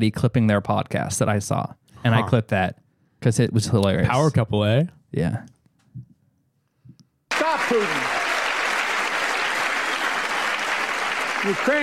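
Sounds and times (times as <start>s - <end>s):
speech: 0.0s - 5.6s, 7.7s - 8.1s, 11.4s - 11.8s
clapping: 7.3s - 11.8s.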